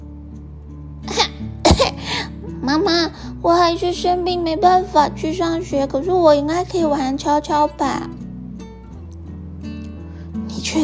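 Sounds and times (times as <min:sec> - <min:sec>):
cough: 0:01.7 - 0:02.0
speech: 0:02.6 - 0:08.2.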